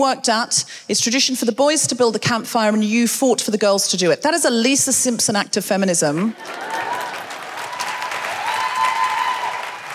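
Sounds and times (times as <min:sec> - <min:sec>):
speech: 0:00.0 - 0:06.9
crowd applauding: 0:06.3 - 0:09.9.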